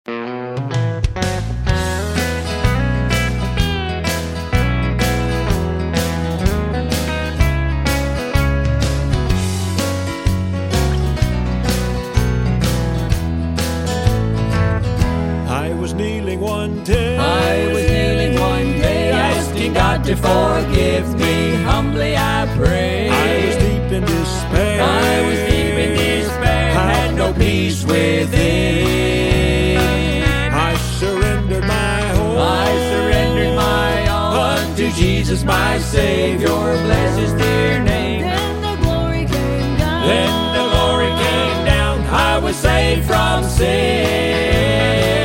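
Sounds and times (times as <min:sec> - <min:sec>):
joyful trio music: 0:00.1 - 0:45.2.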